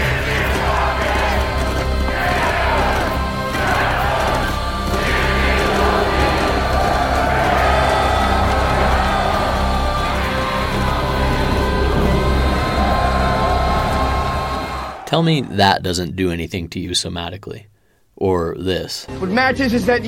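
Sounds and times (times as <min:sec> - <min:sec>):
massed battle cries from a film battle scene: 0:00.0 - 0:15.1
speech: 0:15.2 - 0:20.0.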